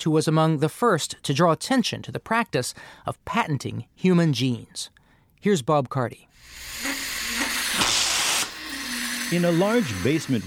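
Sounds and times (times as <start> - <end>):
speech: 0.0 - 6.9, 9.3 - 10.4
liquid nitrogen vapor hissing from hoses charging steel tanks: 6.4 - 10.4.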